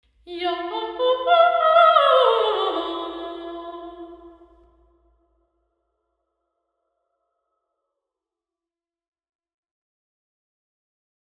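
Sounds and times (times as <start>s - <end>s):
choir singing in St Albans Lady Chapel: 0.3s - 4.5s.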